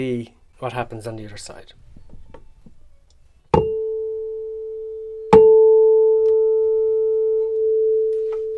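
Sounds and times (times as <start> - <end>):
speech: 0.0 - 1.9
struck tuning fork resonating: 3.6 - 8.5.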